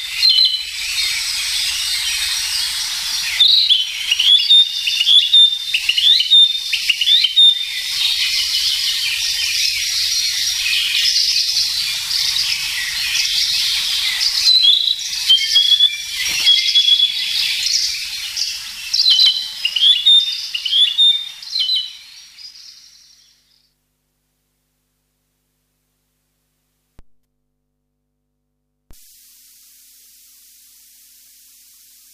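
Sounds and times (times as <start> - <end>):
Narcissus flycatcher whistling: 0.0 - 23.7
insects buzzing: 0.0 - 23.7, 29.0 - 32.1.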